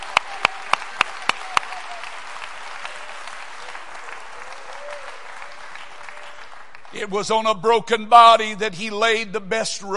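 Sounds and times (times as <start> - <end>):
audience clapping hands: 0.0 - 7.6
speech: 7.0 - 9.9.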